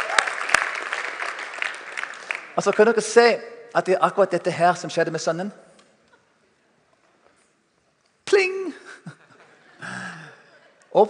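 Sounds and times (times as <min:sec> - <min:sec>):
audience applause: 0:00.0 - 0:02.9
speech: 0:02.6 - 0:05.6
laughter: 0:08.8 - 0:11.0.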